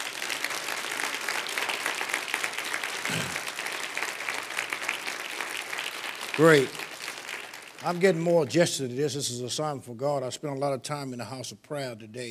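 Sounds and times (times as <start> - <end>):
room full of people clapping: 0.0 - 8.9
speech: 6.4 - 6.8, 7.8 - 12.2.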